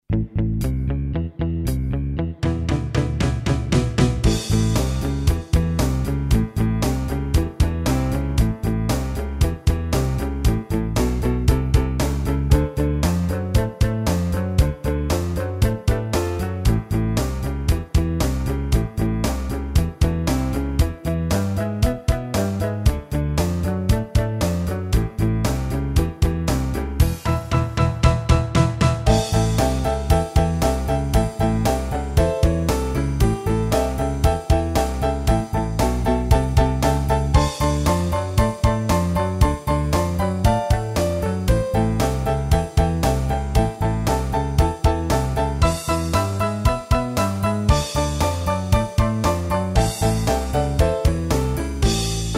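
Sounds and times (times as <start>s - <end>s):
rock guitar: 0.2s - 52.3s.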